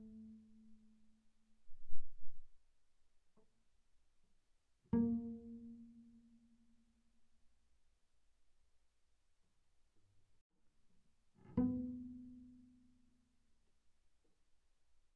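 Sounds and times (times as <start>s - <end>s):
double bass pizzicato on G string: 4.9s - 6.6s, 11.4s - 12.8s.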